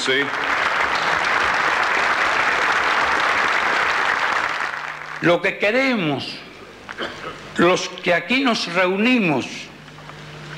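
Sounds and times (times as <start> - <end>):
speech: 0.0 - 0.6, 5.2 - 9.7
crowd applause: 0.0 - 5.3.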